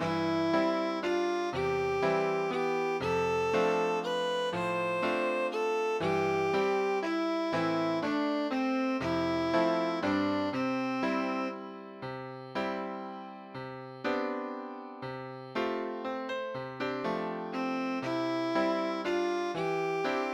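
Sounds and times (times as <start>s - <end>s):
violin: 0.0s - 11.8s, 17.6s - 20.3s
piano: 0.0s - 20.3s.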